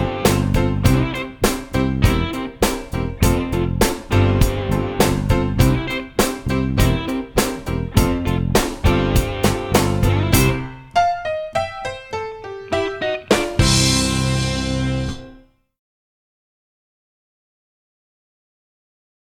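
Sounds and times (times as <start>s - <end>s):
minor blues music: 0.0s - 15.4s.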